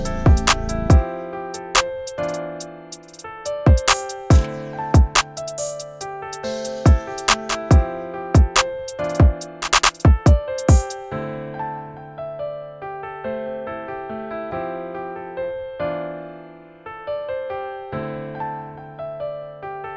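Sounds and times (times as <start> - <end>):
141 BPM beat: 0.0 - 11.0.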